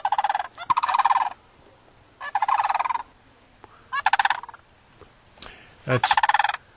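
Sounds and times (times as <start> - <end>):
sandhill crane calls: 0.0 - 4.7, 5.6 - 6.7.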